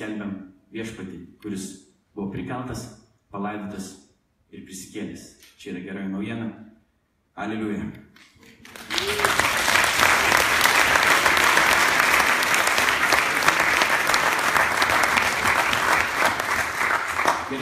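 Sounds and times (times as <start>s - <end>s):
speech: 0.0s - 6.6s, 7.4s - 8.3s
audience applause at a worship gathering: 8.4s - 17.5s.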